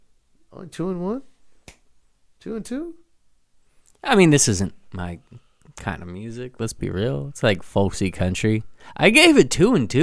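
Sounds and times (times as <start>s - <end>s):
speech: 0.6s - 1.3s, 2.4s - 3.0s, 4.0s - 10.0s
finger snapping: 1.6s - 1.9s.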